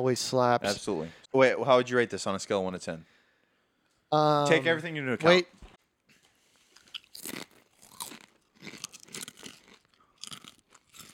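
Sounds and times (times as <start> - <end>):
speech: 0.0 - 3.2, 4.1 - 5.6
crunching on dill pickle potato chips: 6.7 - 11.1.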